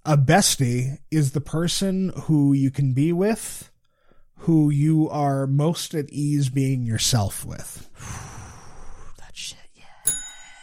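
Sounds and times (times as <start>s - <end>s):
speech: 0.1s - 3.7s, 4.4s - 8.2s
bell ringing: 10.1s - 10.6s.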